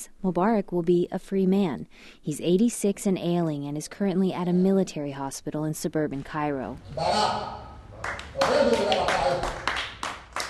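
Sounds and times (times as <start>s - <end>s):
speech: 0.0s - 9.6s
several people clapping in a cafe: 7.9s - 10.4s.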